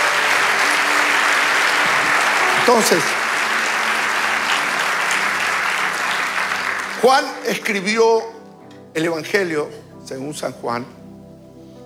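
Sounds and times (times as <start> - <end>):
audience applauding: 0.0 - 8.4
speech: 2.7 - 3.2, 7.0 - 8.3, 9.0 - 11.0.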